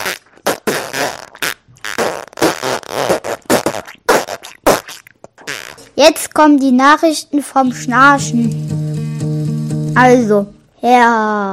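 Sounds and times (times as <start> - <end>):
fart noises: 0.0 - 6.0
speech: 6.0 - 8.7, 10.0 - 11.5.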